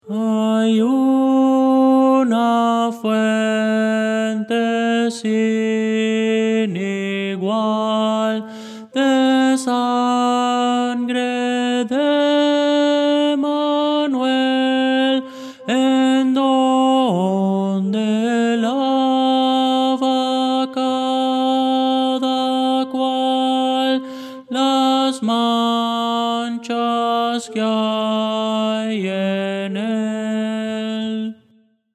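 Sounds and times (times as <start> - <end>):
tenor singing: 0.0 - 31.5.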